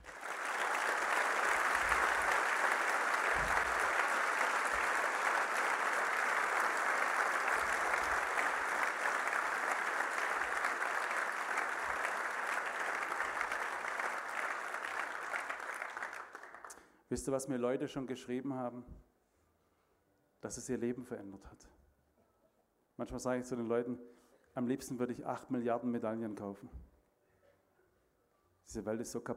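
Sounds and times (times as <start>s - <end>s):
audience applause: 0.0s - 16.8s
speech: 17.1s - 19.1s, 20.5s - 21.8s, 23.0s - 26.8s, 28.7s - 29.3s.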